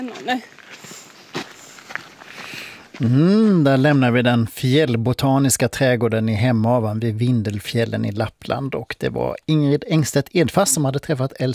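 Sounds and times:
speech: 0.0s - 0.9s, 3.0s - 11.5s
footsteps of people walking through the mountain botanical garden in Hemavan: 0.0s - 4.5s.

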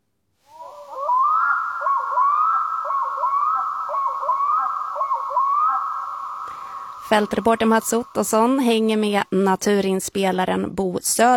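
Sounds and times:
bird wailing calls on a June night outdoors: 0.5s - 9.2s
speech: 7.1s - 11.3s.

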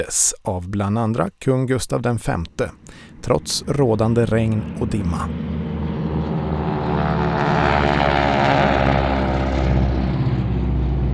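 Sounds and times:
speech: 0.0s - 5.6s
airplane: 2.2s - 11.1s.

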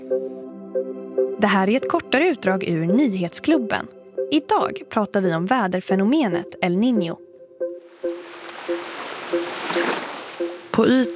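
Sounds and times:
speech: 0.1s - 7.2s, 10.8s - 11.1s
calm ocean waves in the Pacific Ocean: 7.6s - 11.1s.

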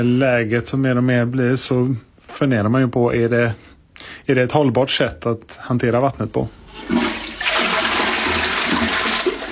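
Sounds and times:
speech: 0.0s - 7.2s
toilet being flushed: 6.6s - 9.5s.

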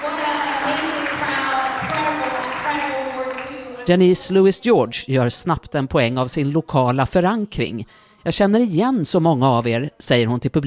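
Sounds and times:
crowd audience applause: 0.0s - 3.9s
speech: 3.9s - 10.6s.

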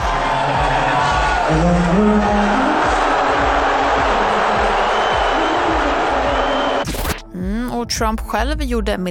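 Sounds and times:
packed Madison Square Garden crowd booing Donald Trump: 0.0s - 6.8s
speech: 1.5s - 2.6s, 7.9s - 9.0s.

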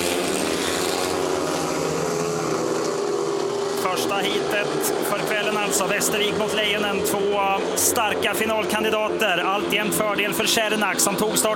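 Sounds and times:
several speedway motorcycle engines roaring at high revs: 0.0s - 11.5s
speech: 4.0s - 11.5s.

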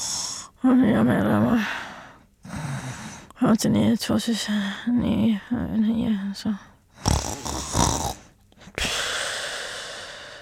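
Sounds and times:
speech: 0.6s - 1.8s, 3.4s - 6.7s
sleepy person snoring: 7.0s - 10.2s.

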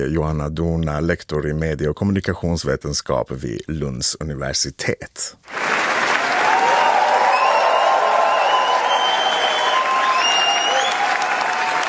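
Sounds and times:
speech: 0.0s - 6.0s
cheers: 5.5s - 11.8s
standing ovation applause from a large crowd at a film premiere: 5.5s - 11.8s
faint whistles: 6.8s - 11.8s.

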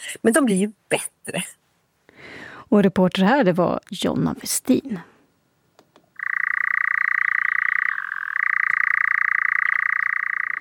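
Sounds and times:
speech: 0.2s - 1.6s, 2.7s - 5.1s
nightjar churring call: 6.2s - 10.5s.

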